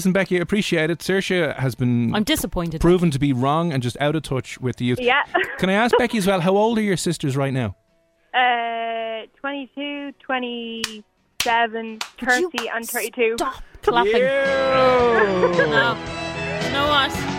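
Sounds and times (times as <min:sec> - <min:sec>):
speech: 0:00.0 - 0:07.8, 0:08.4 - 0:17.3
laughter: 0:05.3 - 0:06.4, 0:13.9 - 0:16.1
hand claps: 0:10.8 - 0:12.9.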